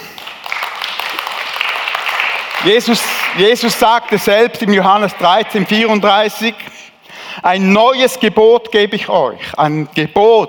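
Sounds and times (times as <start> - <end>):
audience applause: 0.0 - 3.8
speech: 2.6 - 6.7, 7.4 - 10.4.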